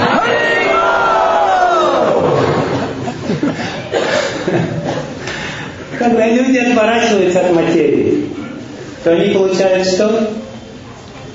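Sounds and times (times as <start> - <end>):
crowd shouting a chant in chorus: 0.0 - 2.9
people laughing: 1.8 - 5.6
speech: 6.1 - 8.4, 9.0 - 10.4.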